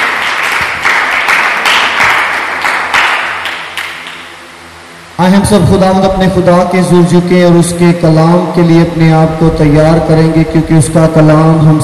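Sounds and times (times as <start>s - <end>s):
loud crowd applause: 0.0s - 4.2s
speech: 5.2s - 11.8s.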